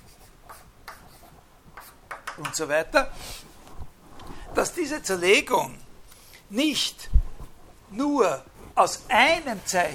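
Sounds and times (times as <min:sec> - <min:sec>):
writing on a board during a philosophy lecture: 0:00.0 - 0:02.4
speech: 0:02.4 - 0:03.5, 0:04.6 - 0:05.8, 0:06.5 - 0:07.2, 0:07.9 - 0:09.9.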